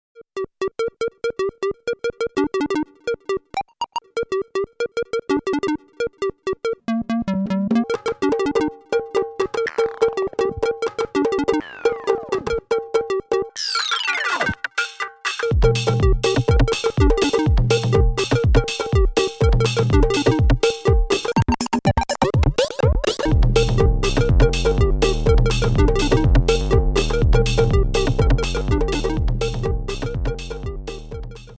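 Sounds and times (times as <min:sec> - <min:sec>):
Roland MC-101 groovebox music: 0:00.4 - 0:31.5.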